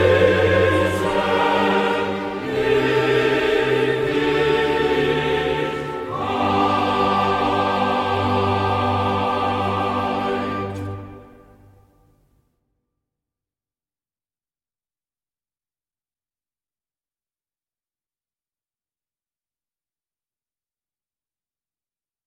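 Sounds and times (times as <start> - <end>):
choir singing a cantata chorale: 0.0 - 11.8.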